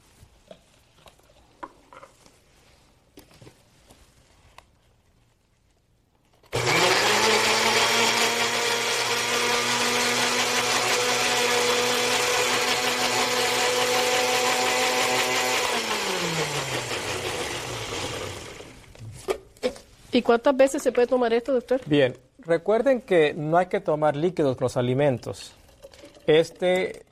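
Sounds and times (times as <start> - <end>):
blender blending pineapple, mint and ginger: 6.5 - 18.9
speech: 20.2 - 25.6, 26.3 - 27.0.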